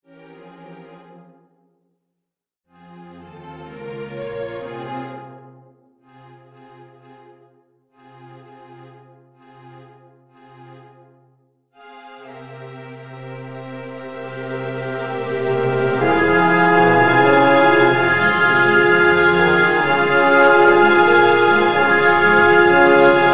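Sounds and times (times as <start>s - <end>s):
piano concerto: 13.1s - 23.3s.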